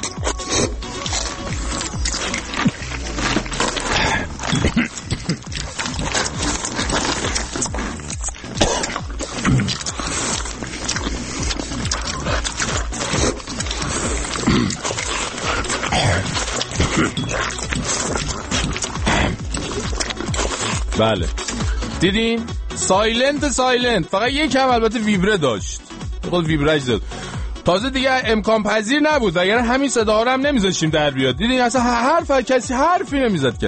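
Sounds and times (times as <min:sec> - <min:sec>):
loud noisy eating: 0:00.0 - 0:23.4
speech: 0:21.0 - 0:21.4, 0:22.0 - 0:25.7, 0:26.3 - 0:33.6.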